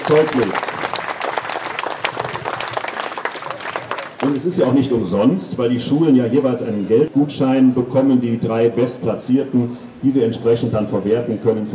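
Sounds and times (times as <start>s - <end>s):
applause: 0.0s - 4.8s
speech: 0.1s - 0.7s, 4.2s - 11.7s.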